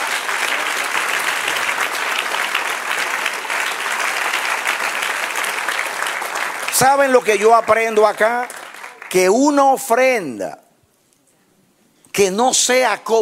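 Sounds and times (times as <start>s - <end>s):
audience applause: 0.0s - 9.3s
speech: 6.8s - 10.6s, 12.2s - 13.2s.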